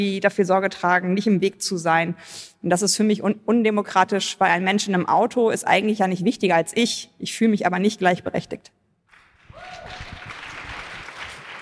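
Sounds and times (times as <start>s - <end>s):
speech: 0.0s - 8.8s
audience applause: 9.1s - 11.6s.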